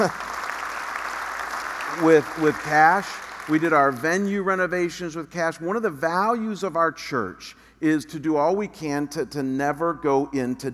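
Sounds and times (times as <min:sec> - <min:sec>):
speech: 0:00.0 - 0:00.2, 0:02.0 - 0:10.7
audience clapping: 0:00.0 - 0:04.0.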